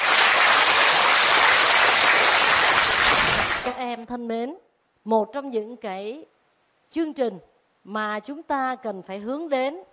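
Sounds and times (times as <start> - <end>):
audience applause: 0.0 - 3.8
speech: 3.9 - 6.3, 6.9 - 9.9.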